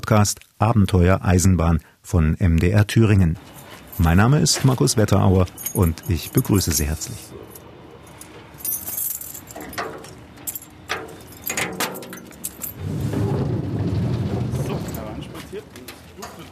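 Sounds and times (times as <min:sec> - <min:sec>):
speech: 0:00.1 - 0:07.6
keys jangling in a lock: 0:03.4 - 0:12.9
heavy sliding shed door rumbling open: 0:03.4 - 0:16.5.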